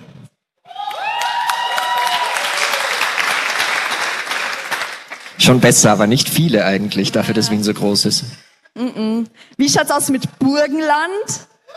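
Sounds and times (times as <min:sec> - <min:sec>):
audience cheering: 0:00.6 - 0:08.0
applause: 0:00.7 - 0:06.1
speech: 0:05.4 - 0:08.4, 0:09.0 - 0:11.5.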